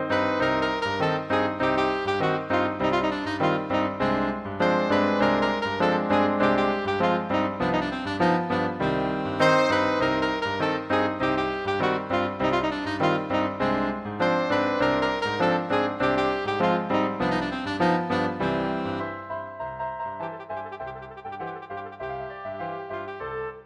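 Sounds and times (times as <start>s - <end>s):
saxophone playing habanera: 0.1s - 19.1s, 20.2s - 23.6s.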